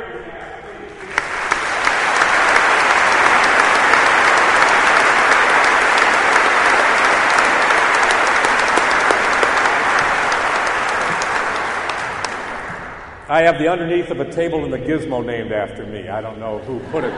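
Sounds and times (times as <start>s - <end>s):
crowd applauding: 1.0s - 13.3s
speech: 13.4s - 17.1s
laughter: 16.4s - 17.1s.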